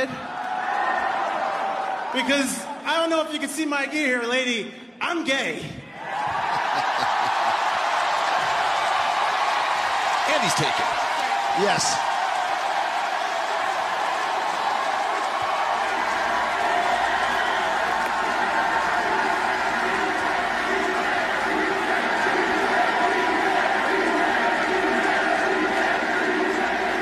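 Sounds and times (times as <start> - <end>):
wrestling arena crowd cheering wildly: 0.0 - 2.8, 5.9 - 27.0
speech: 2.1 - 5.8, 10.3 - 11.0, 11.6 - 12.1
laughter: 6.1 - 8.8.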